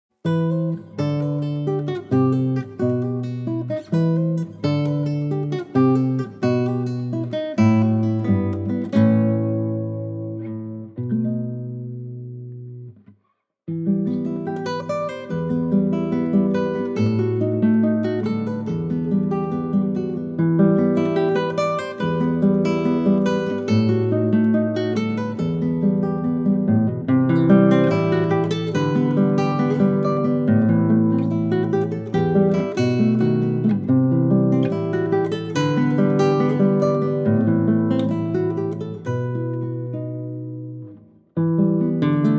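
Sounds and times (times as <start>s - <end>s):
sad guitar melody: 0.2s - 42.3s.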